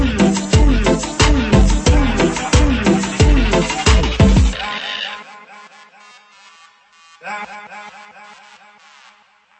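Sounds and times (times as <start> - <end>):
Inca beats: 0.0 - 4.6.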